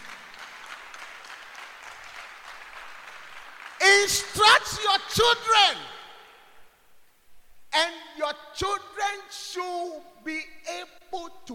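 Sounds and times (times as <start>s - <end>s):
audience clapping: 0.0s - 4.7s
speech: 4.0s - 6.0s, 7.7s - 11.5s.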